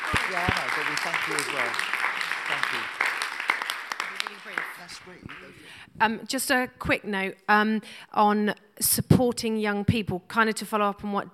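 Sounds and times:
applause: 0.0 - 5.8
speech: 0.3 - 3.0, 4.7 - 11.3.

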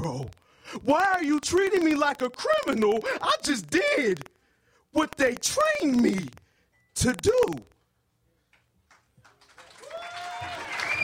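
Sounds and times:
speech: 0.1 - 4.3, 4.9 - 6.4, 7.0 - 7.7
audience applause: 9.2 - 11.0
crowd cheering: 9.4 - 11.0
whistles: 10.6 - 11.0.

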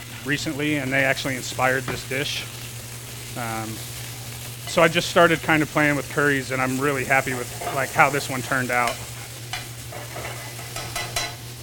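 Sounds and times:
chicken sizzling and caramelizing in a pan: 0.0 - 11.6
speech: 0.2 - 2.6, 3.4 - 3.9, 4.7 - 9.1.

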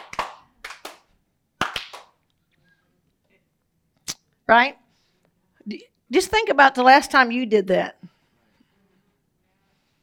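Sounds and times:
single audience member clapping: 0.0 - 2.2
speech: 4.5 - 4.8, 5.6 - 8.1.

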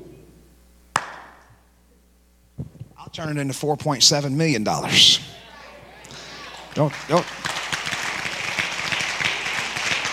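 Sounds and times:
speech: 3.1 - 5.4, 6.8 - 7.5
polite audience clapping: 6.3 - 10.1.

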